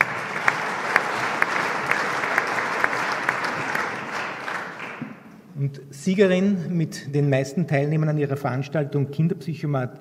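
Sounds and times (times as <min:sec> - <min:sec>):
short round of applause: 0:00.0 - 0:05.3
speech: 0:05.6 - 0:09.9.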